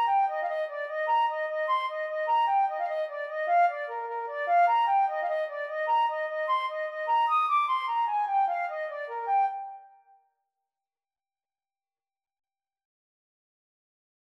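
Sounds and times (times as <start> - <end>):
flute: 0.0 - 10.2.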